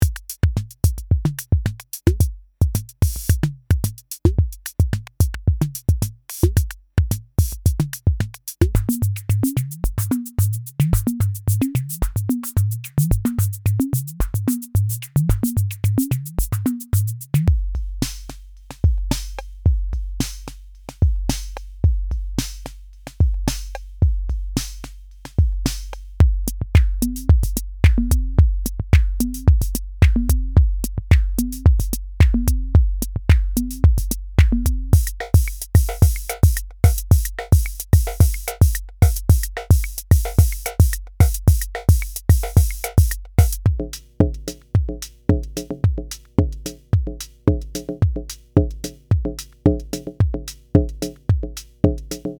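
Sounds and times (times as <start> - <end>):
modulated groove music: 0.0 - 52.3.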